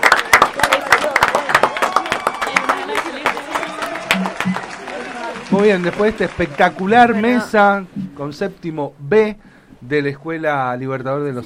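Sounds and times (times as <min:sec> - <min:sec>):
audience applause: 0:00.0 - 0:07.6
speech: 0:05.6 - 0:11.4.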